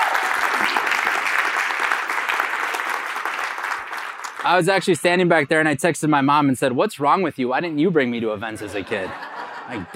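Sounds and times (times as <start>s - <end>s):
audience applause: 0.0s - 4.9s
speech: 4.4s - 9.9s
laughter: 8.5s - 9.9s.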